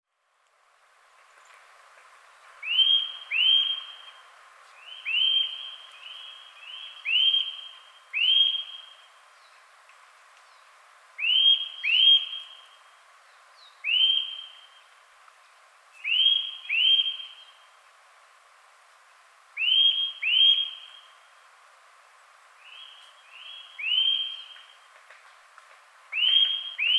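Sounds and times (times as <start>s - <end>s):
Eurasian nuthatch whistled calls: 2.6s - 4.1s, 4.8s - 9.0s, 11.2s - 12.6s, 13.8s - 14.8s, 16.0s - 17.6s, 19.6s - 21.0s, 22.6s - 24.8s, 26.1s - 26.9s.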